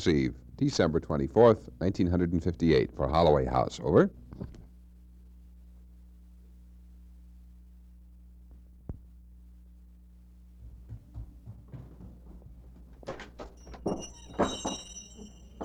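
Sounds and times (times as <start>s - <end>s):
speech: 0.0s - 4.6s
low hum: 0.0s - 15.6s
rustling and thumps: 10.6s - 15.6s
bells hung on a front door jingling: 12.3s - 15.6s.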